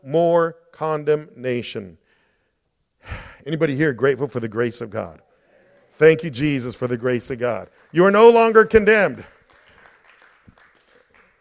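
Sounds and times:
speech: 0.0 - 2.0, 3.0 - 5.3, 6.0 - 9.4
weak audience clapping: 7.0 - 11.4.

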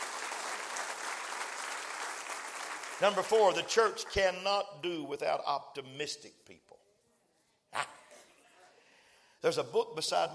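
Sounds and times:
audience clapping hands: 0.0 - 4.2
speech: 3.0 - 6.8, 9.4 - 10.3.

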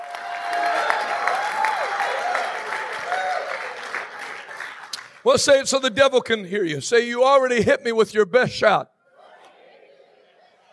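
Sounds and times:
audience clapping hands: 0.0 - 5.7
speech: 5.2 - 8.9.

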